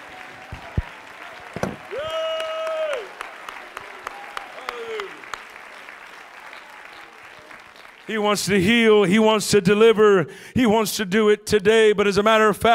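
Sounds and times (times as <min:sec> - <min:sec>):
audience shouting and crying out: 0:00.0 - 0:05.4
audience clapping: 0:00.0 - 0:09.0
speech: 0:08.1 - 0:12.7.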